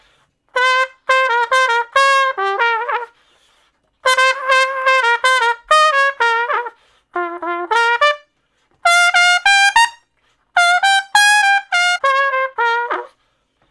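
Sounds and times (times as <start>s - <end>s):
trumpet slow blues in B flat: 0.0s - 13.4s.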